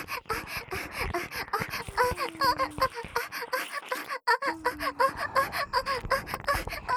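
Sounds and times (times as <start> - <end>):
intense acted moaning: 0.4 - 3.1, 4.4 - 6.9.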